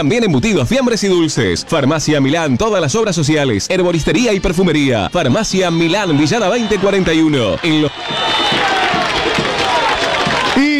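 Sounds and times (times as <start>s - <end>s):
speech: 0.0s - 8.2s
football fans shouting in celebration and relief: 4.1s - 10.7s.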